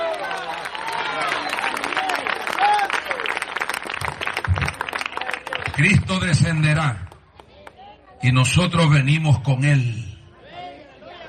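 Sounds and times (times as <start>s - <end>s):
voices cheering: 0.0s - 6.0s
audience applause: 0.0s - 6.5s
speech: 5.8s - 7.0s, 8.2s - 10.1s.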